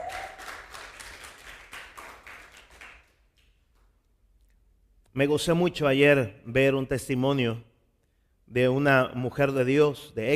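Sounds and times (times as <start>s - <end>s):
audience applauding: 0.0s - 3.5s
speech: 5.2s - 7.7s, 8.5s - 10.3s.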